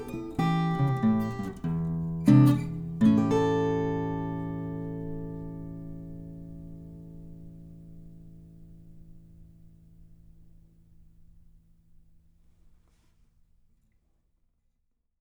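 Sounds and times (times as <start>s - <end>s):
blues music: 0.0s - 7.3s.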